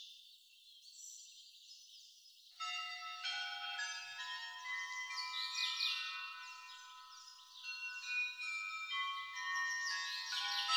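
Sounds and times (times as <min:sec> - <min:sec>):
Blagovest and bells of the Great Lavra bell tower ringing: 0:02.6 - 0:10.7.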